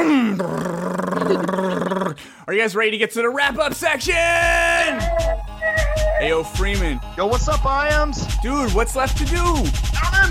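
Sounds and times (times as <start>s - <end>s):
voice imitating an engine starting up: 0.0s - 2.2s
speech: 1.3s - 5.2s, 6.2s - 10.2s.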